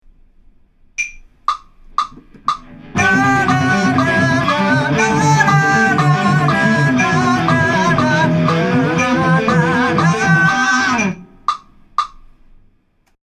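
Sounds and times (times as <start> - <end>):
vocals: 2.6 - 11.7.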